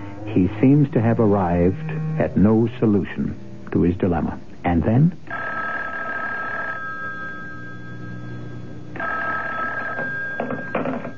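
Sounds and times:
speech: 0.3s - 5.4s
telephone ringing: 5.3s - 11.1s.

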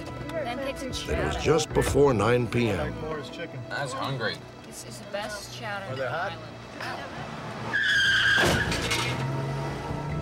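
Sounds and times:
speech: 0.4s - 8.8s
car speeding away: 6.9s - 10.2s.

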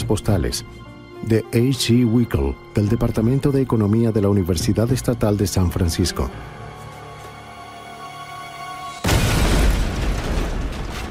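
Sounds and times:
speech: 0.1s - 6.6s
bomb explosion: 9.0s - 11.0s
heavy rumbling roar and debris noise: 9.0s - 11.0s.

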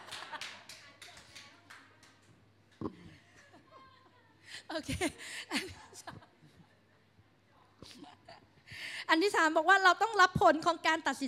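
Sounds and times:
group clapping: 0.0s - 3.7s
faint chuckles and murmuring: 2.7s - 8.7s
speech: 4.7s - 6.2s, 9.1s - 11.2s.

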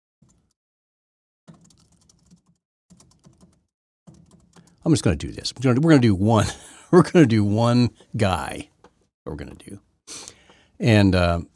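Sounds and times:
computer keyboard typing: 1.5s - 4.8s
speech: 4.8s - 8.7s, 9.3s - 11.5s.

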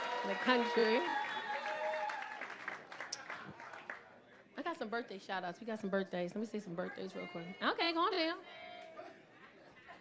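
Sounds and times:
audience applause: 0.0s - 4.1s
speech: 0.2s - 1.2s, 4.8s - 8.6s.

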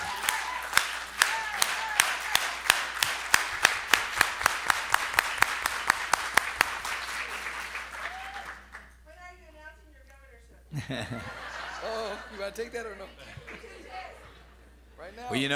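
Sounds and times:
audience applause: 0.0s - 8.9s
laughter: 10.7s - 15.0s
speech: 10.9s - 14.0s, 15.1s - 15.5s.

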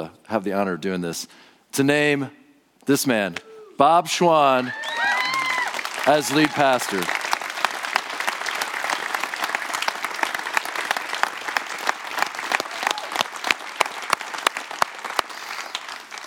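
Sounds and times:
speech: 0.0s - 5.1s, 6.1s - 7.2s
audience applause: 4.6s - 16.2s.

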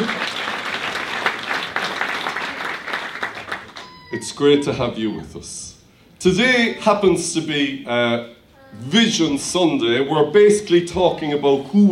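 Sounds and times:
audience giving a warm round of applause: 0.0s - 4.3s
speech: 4.2s - 11.9s.

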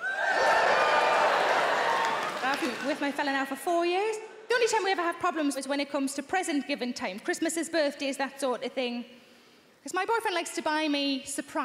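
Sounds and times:
audience cheering: 0.0s - 3.1s
speech: 2.6s - 9.2s, 9.8s - 11.6s.

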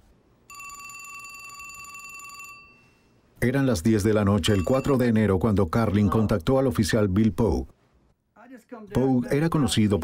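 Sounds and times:
telephone bell ringing: 0.5s - 3.2s, 4.4s - 5.2s
speech: 3.4s - 7.8s, 8.7s - 10.0s.

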